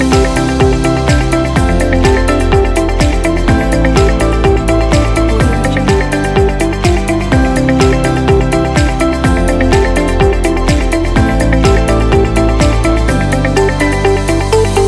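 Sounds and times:
inspirational corporate music: 0.0 - 14.8.

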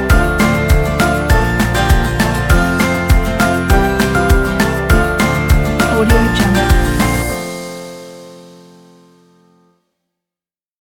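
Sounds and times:
folk music: 0.0 - 7.4.

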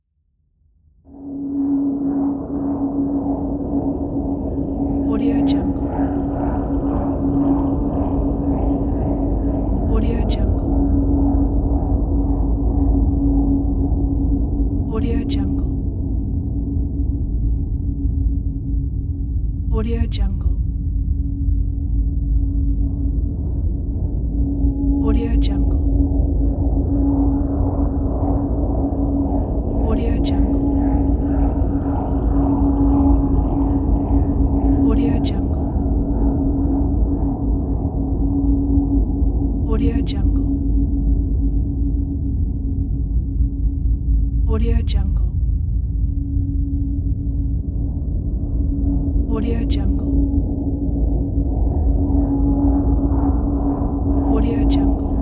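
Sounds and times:
exploration drone: 1.0 - 55.2.

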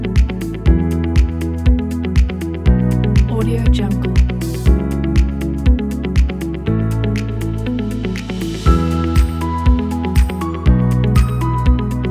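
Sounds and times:
uplifting optimistic corporate background music: 0.0 - 12.1.

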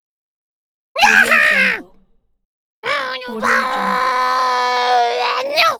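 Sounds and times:
wacky fun monster sound: 1.0 - 1.9, 2.8 - 5.7.

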